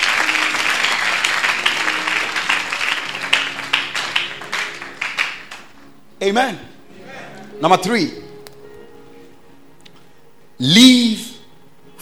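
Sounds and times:
audience clapping their hands: 0.0s - 5.8s
speech: 6.2s - 6.7s, 7.6s - 8.2s, 10.6s - 11.3s.

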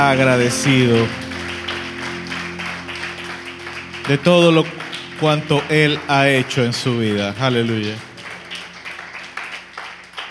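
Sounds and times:
speech: 0.0s - 1.3s, 4.1s - 8.1s
sustained low tone: 0.0s - 8.7s
rhythmic congregational clapping during a church service praising the Lord: 0.0s - 10.3s.

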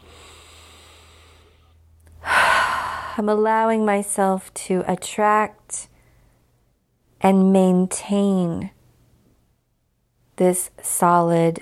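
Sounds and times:
big deep breath during a finger-tapping exercise: 0.0s - 3.2s
speech: 3.2s - 5.9s, 7.2s - 8.8s, 10.4s - 11.5s.

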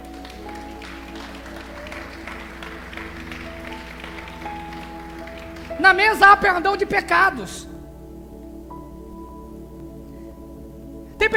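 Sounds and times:
audience applause: 0.0s - 6.9s
speech: 5.8s - 7.7s.

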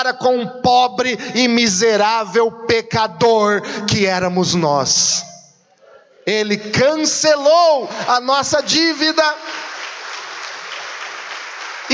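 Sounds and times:
speech: 0.0s - 5.3s, 6.3s - 9.7s
applause: 8.6s - 11.9s.

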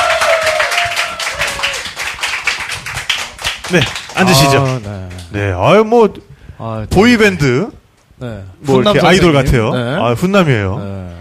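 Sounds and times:
small group clapping to welcome a guest: 0.0s - 5.4s
speech: 3.7s - 11.1s.

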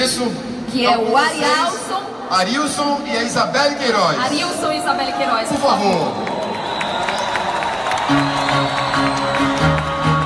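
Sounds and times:
speech: 0.1s - 6.3s
audience applause and cheering: 4.7s - 10.2s.

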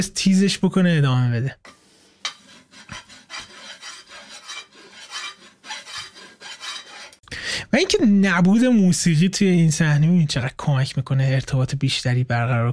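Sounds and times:
speech: 0.0s - 1.8s, 7.7s - 12.7s
pickaxe scraping rock echoing in a well: 2.3s - 7.2s.

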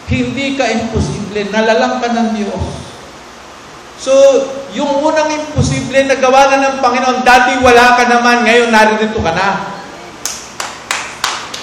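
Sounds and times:
speech: 0.1s - 2.8s, 4.0s - 9.7s
audience applauding: 10.2s - 11.6s.

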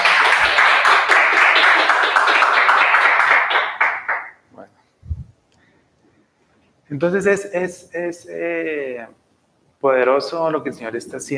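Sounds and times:
audience applause: 0.0s - 4.3s
speech: 6.9s - 9.2s, 9.8s - 11.3s.

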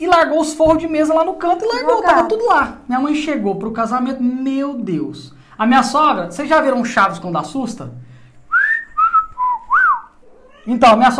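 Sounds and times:
speech: 0.0s - 8.1s, 10.6s - 11.1s
person whistling a tune: 8.5s - 10.1s.

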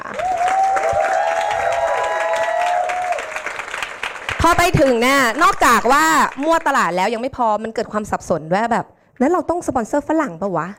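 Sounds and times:
cheering: 0.0s - 4.4s
audience clapping: 0.0s - 7.0s
speech: 4.4s - 10.7s.

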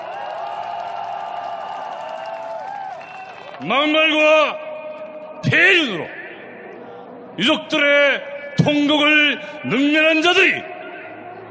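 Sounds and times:
audience applause: 0.0s - 3.7s
speech: 3.6s - 4.7s, 5.4s - 6.2s, 7.4s - 10.7s.

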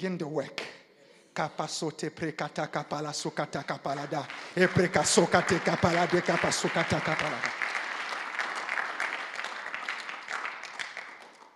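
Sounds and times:
speech: 0.0s - 0.8s, 1.4s - 7.8s
audience clapping: 3.6s - 11.5s.

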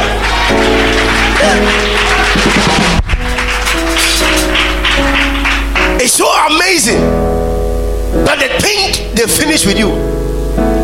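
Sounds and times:
audience clapping: 0.0s - 6.2s
speech: 6.7s - 7.2s, 8.3s - 10.7s.

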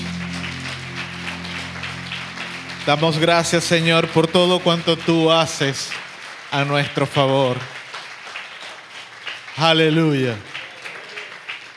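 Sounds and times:
low sustained hum from an instrument or sound system: 0.0s - 5.2s
audience applause: 0.0s - 11.7s
speech: 2.8s - 7.8s, 9.6s - 10.5s.

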